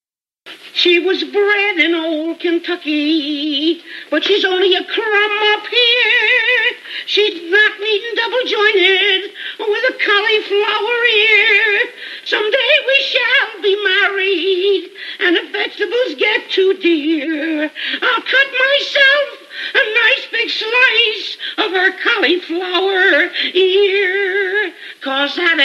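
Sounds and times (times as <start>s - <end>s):
person singing: 0.5s - 25.6s.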